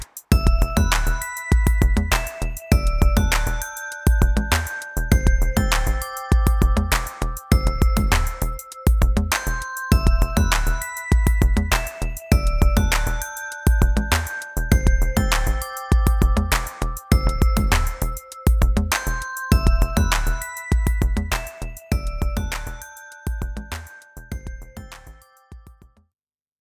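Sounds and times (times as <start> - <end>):
EQed electronica music: 0.3 - 25.5.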